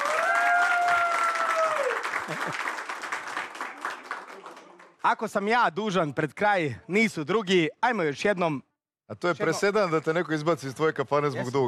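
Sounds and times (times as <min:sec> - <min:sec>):
show audience applause: 0:00.0 - 0:05.0
speech: 0:02.3 - 0:02.7, 0:05.1 - 0:11.6.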